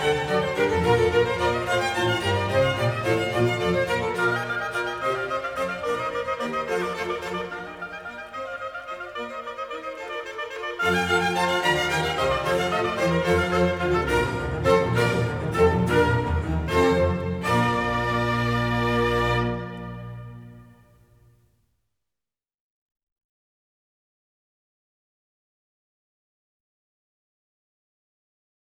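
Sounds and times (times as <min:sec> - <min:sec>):
oboe concerto allegro in B-flat: 0:00.0 - 0:21.0.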